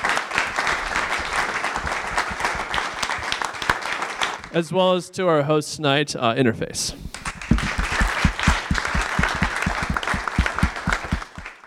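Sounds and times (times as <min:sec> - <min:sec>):
audience applause for panelists: 0:00.0 - 0:04.4, 0:07.1 - 0:11.6
speech: 0:04.5 - 0:07.2.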